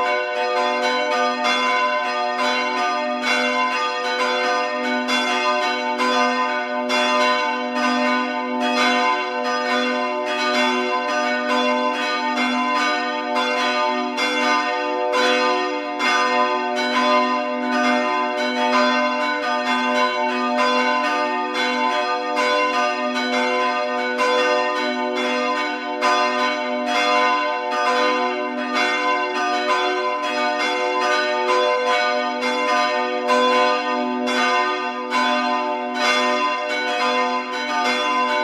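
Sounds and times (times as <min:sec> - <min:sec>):
church bells ringing in Ober-Breidenbach: 0:00.0 - 0:38.4.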